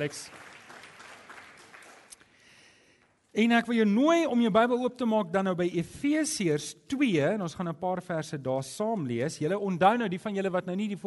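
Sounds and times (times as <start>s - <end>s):
speech: 0.0s - 0.5s, 3.4s - 11.0s
hand clapping applause: 0.0s - 2.4s.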